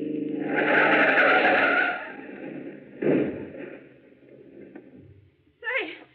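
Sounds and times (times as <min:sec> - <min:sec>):
car tires screeching in a skid: 0:00.0 - 0:03.9
thudding jolt of car into ditch: 0:02.8 - 0:04.0.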